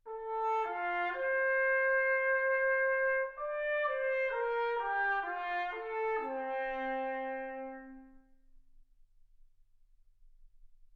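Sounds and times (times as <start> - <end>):
trumpet: 0.0 - 8.5.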